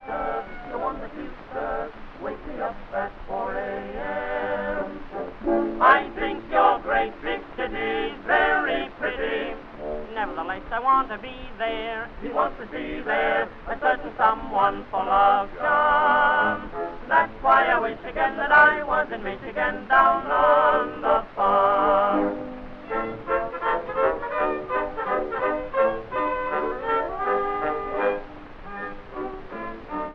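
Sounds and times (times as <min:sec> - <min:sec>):
tenor singing: 0:00.0 - 0:29.9.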